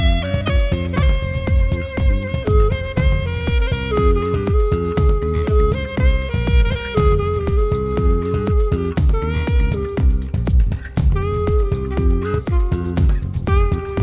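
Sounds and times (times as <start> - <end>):
saxophone: 0.0 - 14.0.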